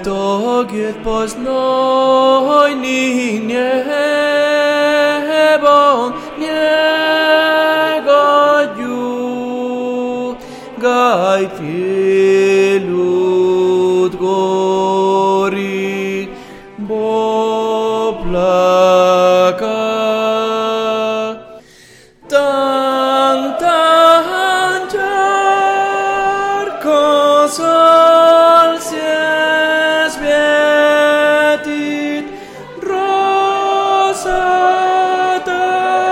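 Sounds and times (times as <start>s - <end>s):
tenors singing opera repertoire: 0.0s - 36.1s.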